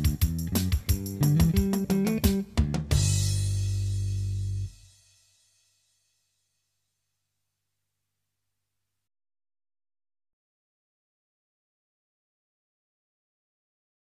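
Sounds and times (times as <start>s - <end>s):
country pickin backing track: 0.0s - 4.7s.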